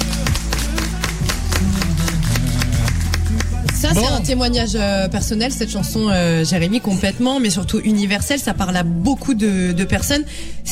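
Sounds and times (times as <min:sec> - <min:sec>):
audience applause: 0:00.0 - 0:03.8
speech: 0:03.9 - 0:10.7.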